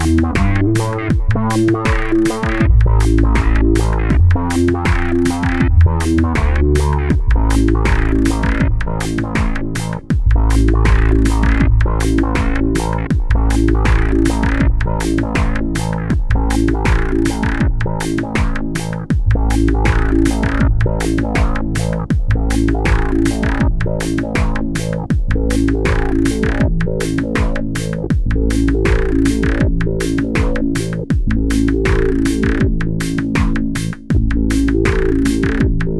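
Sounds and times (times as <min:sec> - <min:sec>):
bass: 0:00.0 - 0:35.9
sequencer pattern: 0:00.0 - 0:35.9.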